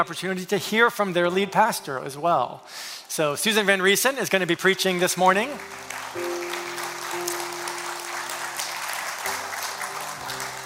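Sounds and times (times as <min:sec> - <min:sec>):
speech: 0:00.0 - 0:06.4
audience applause: 0:05.4 - 0:10.6.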